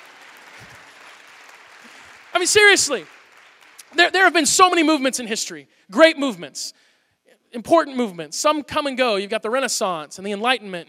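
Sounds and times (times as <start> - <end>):
delayed audience clapping: 0.0 - 4.0
speech: 2.4 - 3.2, 3.9 - 6.9, 7.5 - 10.8.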